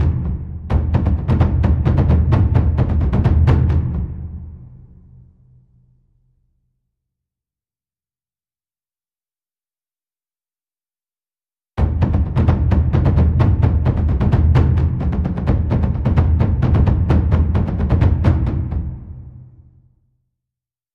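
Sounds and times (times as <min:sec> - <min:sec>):
taiko drums: 0:00.0 - 0:05.2, 0:11.8 - 0:19.6.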